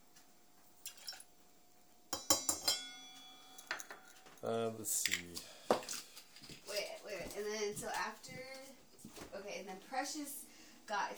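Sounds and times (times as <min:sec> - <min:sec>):
glasses clinking while mixing a Bloody Mary: 0:02.2 - 0:04.4
speech: 0:04.4 - 0:05.6, 0:07.4 - 0:11.1.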